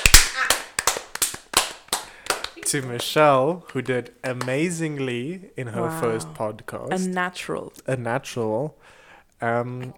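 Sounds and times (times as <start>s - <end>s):
small round of applause from a few people: 0.0s - 4.6s
speech: 2.6s - 9.9s.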